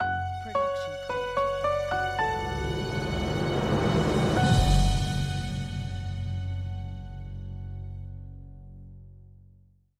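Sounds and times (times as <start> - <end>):
mysterious ident jingle: 0.5 - 7.8.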